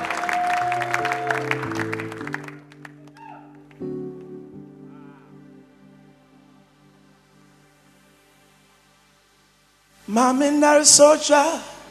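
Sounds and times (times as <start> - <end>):
audience clapping in praise: 0.0 - 4.4
sustained organ-like keyboard chords: 0.0 - 11.4
speech: 10.1 - 11.7.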